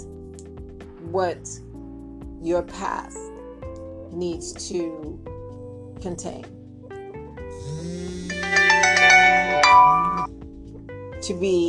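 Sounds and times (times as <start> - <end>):
speech: 1.1 - 1.7, 2.4 - 3.3, 4.1 - 5.3, 6.0 - 6.6, 11.2 - 11.6
mobile phone ringtone of chiming electronic notes: 8.3 - 10.3.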